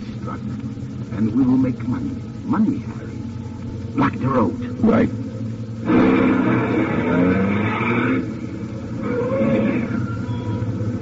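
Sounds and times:
truck engine rumbling as it approaches: 0:00.0 - 0:11.0
speech: 0:00.2 - 0:03.2, 0:04.0 - 0:07.5.

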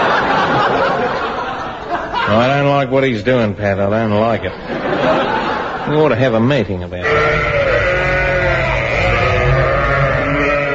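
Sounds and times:
laughter: 0:00.0 - 0:02.7, 0:04.4 - 0:06.2
speech: 0:02.3 - 0:07.6
sheep bleating from a gramophone record: 0:07.0 - 0:10.7.

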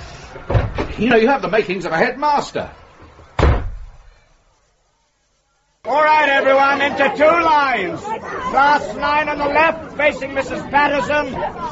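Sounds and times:
toilet door slamming shut: 0:00.4 - 0:01.1, 0:03.4 - 0:04.0
speech: 0:00.4 - 0:02.8, 0:05.9 - 0:11.6.

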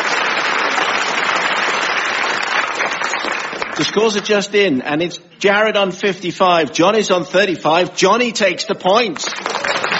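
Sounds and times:
audience applause: 0:00.0 - 0:04.0, 0:09.0 - 0:09.9
speech: 0:03.8 - 0:09.5.

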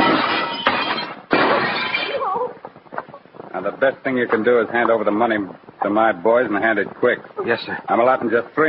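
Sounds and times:
glass being smashed in: 0:00.0 - 0:02.2
speech: 0:03.6 - 0:08.6.

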